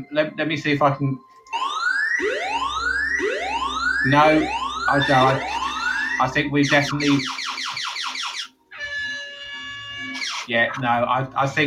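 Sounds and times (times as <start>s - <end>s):
speech: 0.0s - 1.6s, 4.0s - 5.6s, 6.2s - 7.4s, 10.5s - 11.6s
burglar alarm going off: 1.5s - 10.5s.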